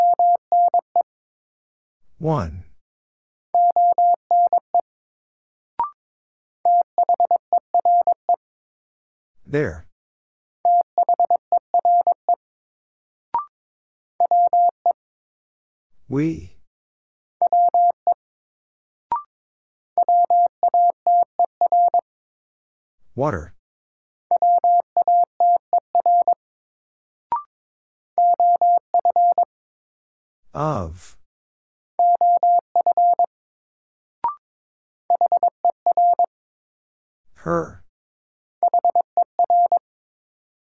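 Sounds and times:
Morse code word drill beeps at 22 wpm: 0:00.0 - 0:00.8, 0:03.6 - 0:04.6, 0:06.7 - 0:08.1, 0:10.7 - 0:12.4, 0:14.3 - 0:14.8, 0:17.4 - 0:18.0, 0:20.0 - 0:22.0, 0:24.4 - 0:26.4, 0:28.2 - 0:29.5, 0:32.0 - 0:33.3, 0:35.1 - 0:36.3, 0:38.6 - 0:39.8
person speaking single words: 0:02.2 - 0:02.6, 0:09.5 - 0:09.9, 0:16.1 - 0:16.6, 0:23.1 - 0:23.6, 0:30.6 - 0:31.2, 0:37.4 - 0:37.9
speech: 0:02.2 - 0:02.6, 0:09.5 - 0:09.9, 0:16.1 - 0:16.6, 0:23.2 - 0:23.6, 0:30.6 - 0:31.2, 0:37.4 - 0:37.8.

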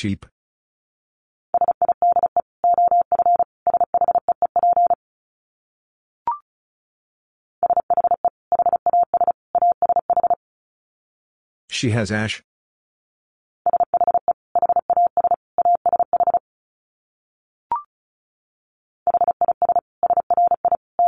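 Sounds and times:
speech: 0:00.0 - 0:00.3, 0:11.8 - 0:12.5
Morse code beeps at 35 wpm: 0:01.6 - 0:05.0, 0:07.6 - 0:10.4, 0:13.7 - 0:16.4, 0:19.1 - 0:21.0.

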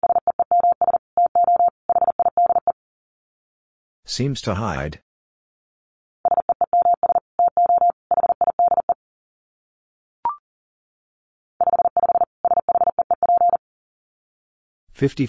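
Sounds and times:
Morse code tones at 40 wpm: 0:00.0 - 0:02.8, 0:06.3 - 0:09.0, 0:11.6 - 0:13.6
speech: 0:04.1 - 0:05.1, 0:15.0 - 0:15.2.

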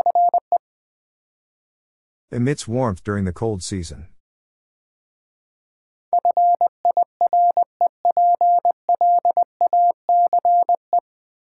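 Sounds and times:
Morse code beeps spelling fireplace: 0:00.0 - 0:00.6, 0:06.2 - 0:11.0
speech: 0:02.3 - 0:04.2.

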